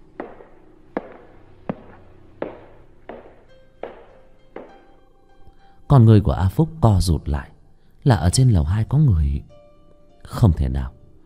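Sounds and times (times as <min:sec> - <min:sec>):
footsteps on upstairs staircase: 0:00.0 - 0:04.9
speech: 0:05.9 - 0:09.6, 0:10.2 - 0:11.0.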